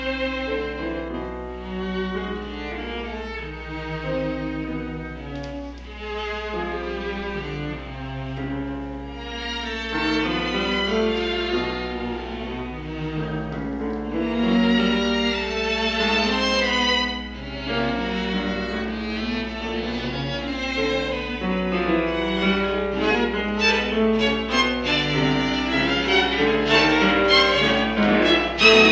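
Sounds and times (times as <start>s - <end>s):
piano and string quartet playing a quintet: 0.0s - 28.9s.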